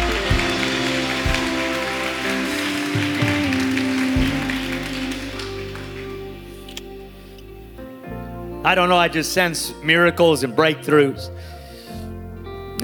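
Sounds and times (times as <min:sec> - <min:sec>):
audience clapping: 0:00.0 - 0:06.9
speech: 0:08.7 - 0:11.6.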